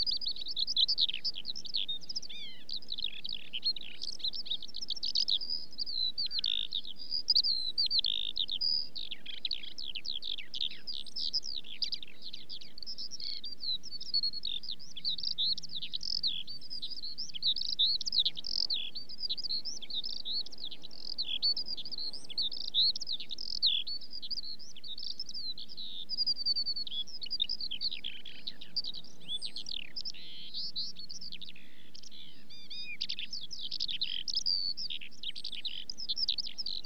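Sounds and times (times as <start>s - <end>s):
skylark song-flight: 0.0s - 36.8s.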